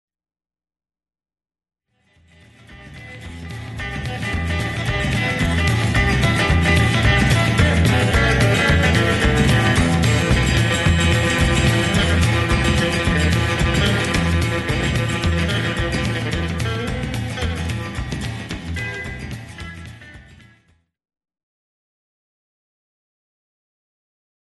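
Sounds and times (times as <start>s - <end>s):
rhythm: 2.3s - 20.6s.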